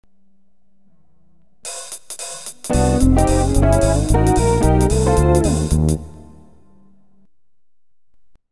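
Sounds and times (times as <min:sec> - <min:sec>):
jazz music: 0:01.7 - 0:06.8.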